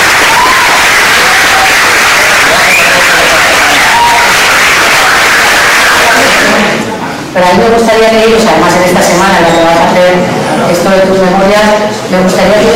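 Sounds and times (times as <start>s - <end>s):
audience applause: 0.0s - 6.8s
speech: 7.4s - 12.7s.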